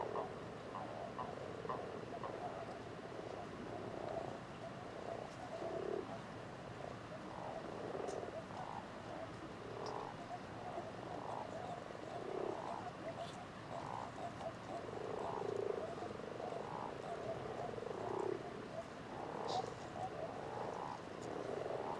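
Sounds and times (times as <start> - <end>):
chorus of common toads and common frogs croaking at Etang de Beaumont: 0.0 - 21.9.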